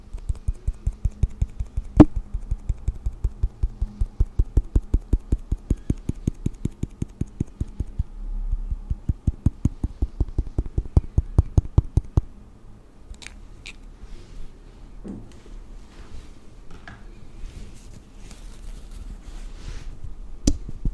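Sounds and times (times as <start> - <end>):
makeup tapped onto a face: 0.1 - 8.1, 8.8 - 12.3.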